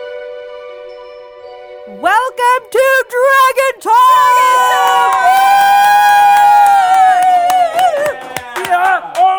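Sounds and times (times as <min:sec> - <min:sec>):
speech: 0:01.9 - 0:05.2
crowd cheering and whooping for the hosts of a live show: 0:04.0 - 0:09.2.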